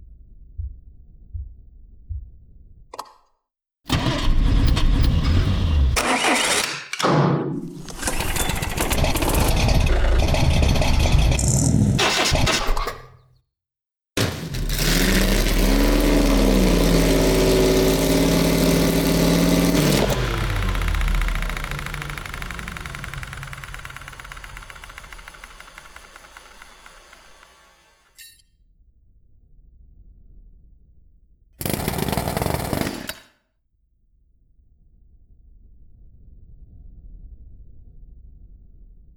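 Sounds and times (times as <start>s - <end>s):
engine: 3.9s - 12.6s, 14.2s - 28.4s, 31.6s - 33.4s.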